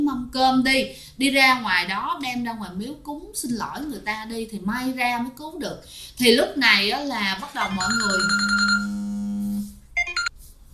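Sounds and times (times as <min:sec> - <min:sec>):
speech: 0:00.3 - 0:08.9
phone ringtone: 0:07.6 - 0:09.1, 0:10.0 - 0:10.3.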